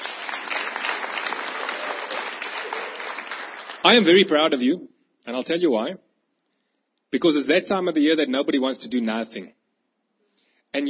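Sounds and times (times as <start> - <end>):
audience applause: 0.0 - 4.2
speech: 3.8 - 6.0, 7.1 - 9.6.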